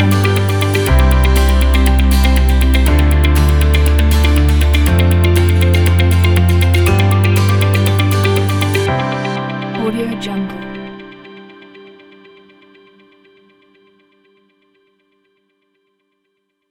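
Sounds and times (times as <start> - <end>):
corporate motivational intro logo music: 0.0 - 12.6.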